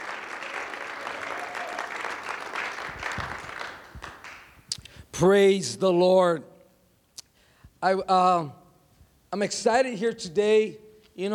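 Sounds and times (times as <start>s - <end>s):
audience clapping: 0.0s - 4.8s
speech: 5.2s - 6.5s, 7.8s - 8.6s, 9.3s - 11.3s.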